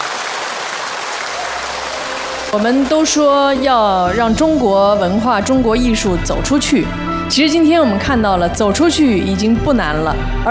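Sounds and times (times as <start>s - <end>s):
audience applause: 0.0s - 4.1s
speech: 2.5s - 10.5s.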